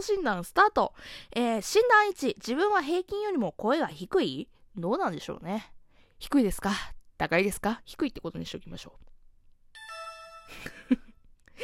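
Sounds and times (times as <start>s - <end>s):
speech: 0.0s - 9.1s, 10.5s - 11.6s
app ding-dong chime: 9.8s - 11.1s.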